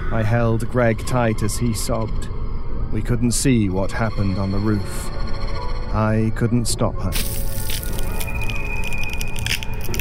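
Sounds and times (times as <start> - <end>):
speech: 0.1 - 7.5
crunching and crackling: 7.2 - 9.9.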